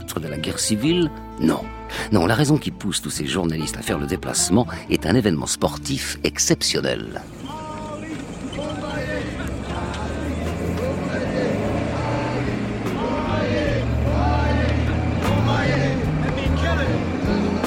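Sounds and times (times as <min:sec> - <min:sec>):
speech: 0:00.2 - 0:07.6
Citroën DS and escort cars driving slowly in a motorcade: 0:04.8 - 0:17.6
crowd chattering: 0:07.2 - 0:17.6.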